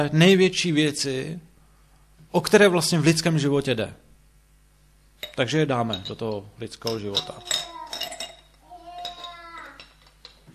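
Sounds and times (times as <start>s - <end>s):
speech: 0.0s - 1.5s, 2.3s - 4.0s, 5.2s - 7.7s
glass being set down gently: 5.2s - 10.5s.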